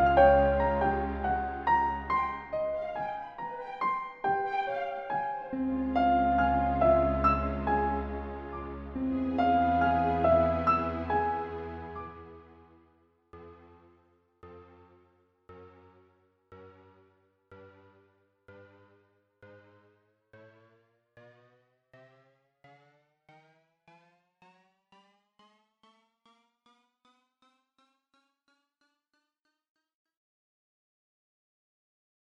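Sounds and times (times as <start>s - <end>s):
piano: 0.0s - 12.8s.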